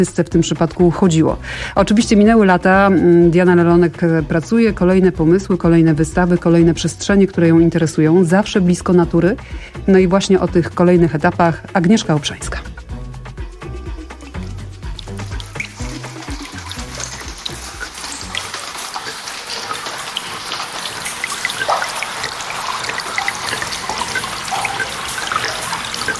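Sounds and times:
speech: 0:00.0 - 0:12.8
glacier meltwater: 0:15.0 - 0:26.1.

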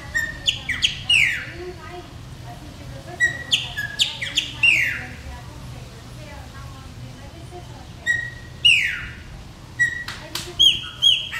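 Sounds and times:
chopi blackbird song: 0:00.0 - 0:01.5, 0:03.2 - 0:05.1, 0:08.0 - 0:09.2, 0:09.8 - 0:11.3.

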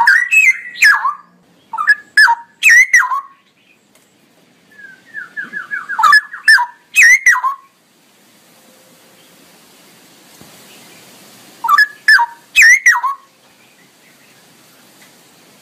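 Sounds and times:
male straw-headed bulbul singing loudly: 0:00.0 - 0:03.8, 0:04.7 - 0:07.7, 0:10.7 - 0:14.5.

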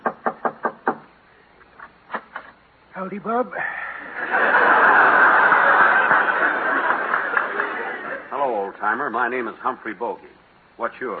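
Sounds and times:
knocking on the door of an old prospector's house: 0:00.0 - 0:01.1
speech: 0:03.0 - 0:05.0, 0:08.7 - 0:11.1
laughter: 0:04.0 - 0:08.4.

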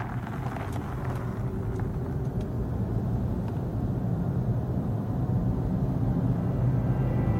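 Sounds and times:
electric zero-emission BMW i3 car driving: 0:00.0 - 0:03.9, 0:04.8 - 0:07.3.

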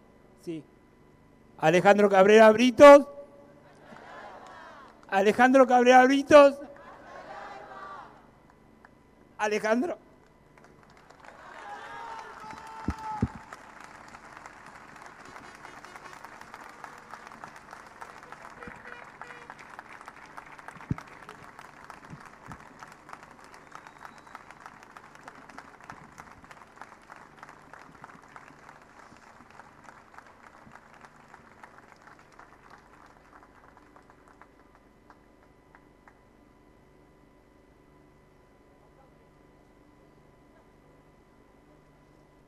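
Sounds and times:
speech: 0:00.4 - 0:00.8, 0:01.6 - 0:03.2, 0:05.1 - 0:06.7, 0:09.4 - 0:10.0
shouts: 0:06.8 - 0:08.2, 0:11.4 - 0:13.5
audience applause: 0:10.6 - 0:34.8.

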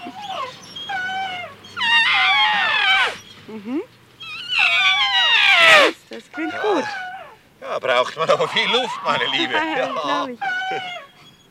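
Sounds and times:
speech: 0:00.0 - 0:00.4, 0:07.8 - 0:11.0
baby elephant trumpeting in high-pitched wailing squeals: 0:01.2 - 0:03.4, 0:04.3 - 0:11.1.

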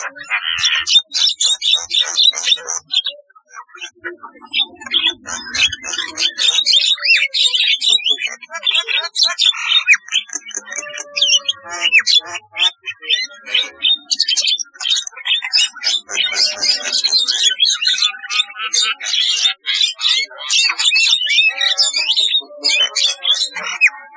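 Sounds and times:
starling singing harsh chatter and whistles: 0:00.0 - 0:24.1.

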